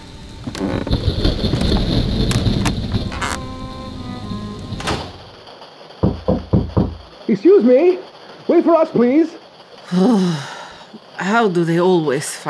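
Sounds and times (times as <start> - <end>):
rain: 0.0 - 12.4
heavy wooden carriage door creaking and thudding shut: 0.5 - 3.6, 4.5 - 5.4, 6.0 - 7.1
speech: 7.3 - 12.4.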